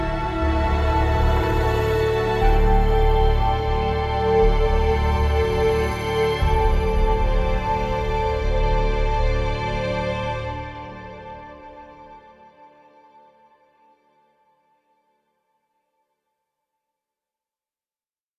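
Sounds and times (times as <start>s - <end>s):
depression ambient music: 0.0s - 14.7s.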